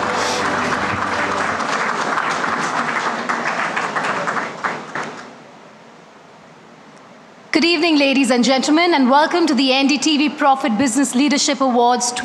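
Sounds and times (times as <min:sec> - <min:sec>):
audience applause: 0:00.0 - 0:05.4
speech: 0:07.6 - 0:12.2.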